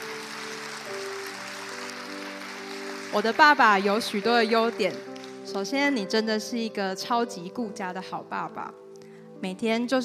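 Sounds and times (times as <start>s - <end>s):
audience applause: 0.0s - 5.5s
speech: 3.1s - 8.8s, 9.4s - 10.0s.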